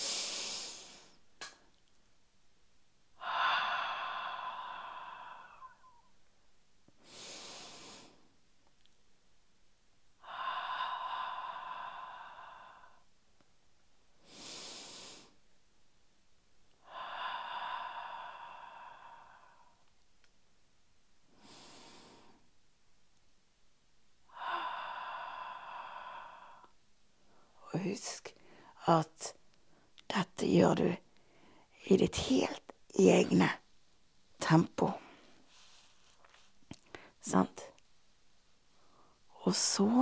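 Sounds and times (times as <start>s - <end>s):
person breathing in through nose and out through mouth: 0.0s - 1.3s, 3.2s - 6.1s, 7.0s - 8.3s, 10.2s - 13.1s, 14.2s - 15.4s, 16.8s - 19.8s, 21.3s - 22.5s, 24.3s - 27.6s, 28.3s - 28.8s, 31.1s - 31.8s, 35.0s - 37.2s, 38.7s - 39.3s
speech: 28.9s - 29.4s, 30.4s - 31.0s, 31.9s - 33.6s, 34.5s - 35.0s, 37.2s - 37.7s, 39.5s - 40.0s.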